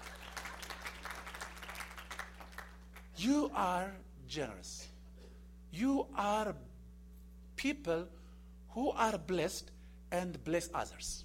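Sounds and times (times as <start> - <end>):
church audience applauding: 0.0 - 3.1
speech: 3.2 - 4.9, 5.7 - 6.7, 7.6 - 11.2.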